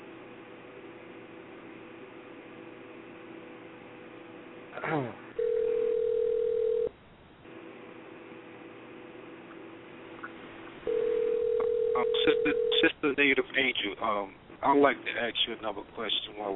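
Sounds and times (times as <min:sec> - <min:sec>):
speech: 0:04.8 - 0:05.2, 0:13.1 - 0:16.5
telephone dial tone after a dropped call: 0:05.4 - 0:06.9, 0:10.9 - 0:12.9.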